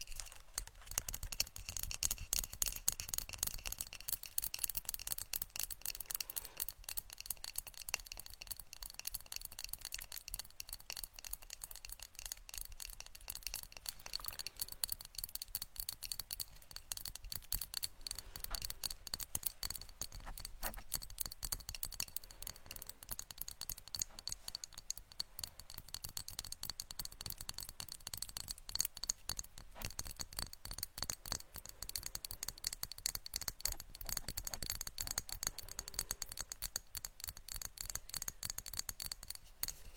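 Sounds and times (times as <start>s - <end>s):
rapid brain tapping clicks: 0.1s - 39.8s.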